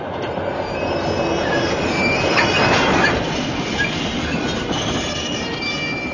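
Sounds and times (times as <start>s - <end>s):
train braking with wheels squealing on rails: 0.0s - 6.1s.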